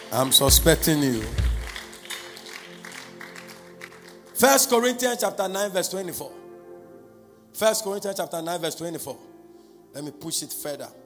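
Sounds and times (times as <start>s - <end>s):
audience clapping: 0.0s - 4.7s
speech: 0.1s - 1.5s, 4.4s - 6.4s, 7.6s - 9.3s, 9.9s - 11.0s.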